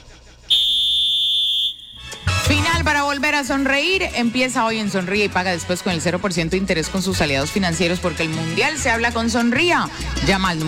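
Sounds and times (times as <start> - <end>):
referee's final whistle blast: 0.5 - 2.2
speech: 3.4 - 10.6.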